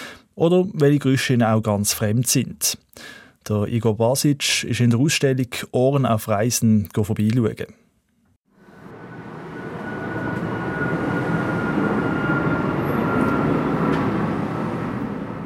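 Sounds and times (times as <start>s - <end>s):
speech: 0.4s - 7.8s
airplane flying overhead: 8.6s - 15.4s.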